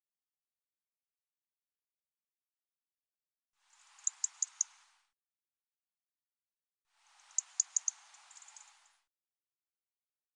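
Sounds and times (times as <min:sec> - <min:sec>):
European robin ticking: 0:04.0 - 0:04.8, 0:07.3 - 0:08.7.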